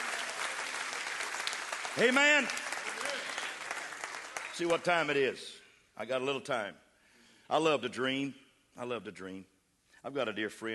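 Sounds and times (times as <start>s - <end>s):
audience clapping hands: 0.0s - 5.3s
speech: 2.0s - 3.3s, 4.6s - 6.8s, 7.5s - 10.7s.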